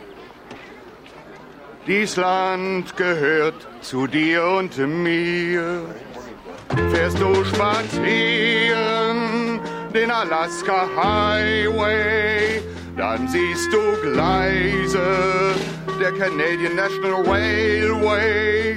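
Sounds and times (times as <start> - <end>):
singing: 1.9 - 18.7.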